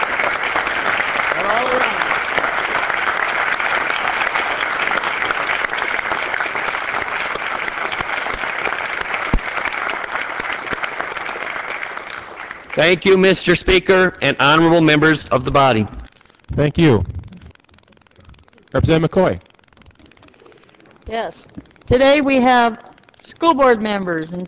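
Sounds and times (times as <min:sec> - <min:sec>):
audience applause: 0:00.0 - 0:13.8
speech: 0:12.8 - 0:16.0, 0:16.6 - 0:17.1, 0:18.8 - 0:19.4, 0:21.1 - 0:24.4.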